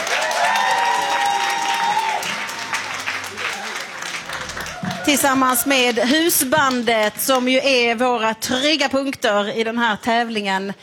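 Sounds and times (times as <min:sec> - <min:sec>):
audience applause: 0:00.0 - 0:07.5
speech: 0:05.1 - 0:10.8.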